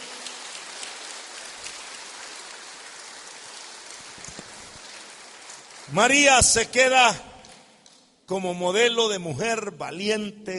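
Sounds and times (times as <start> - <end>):
audience applause: 0.0 - 7.0
speech: 5.9 - 7.3, 8.3 - 10.5.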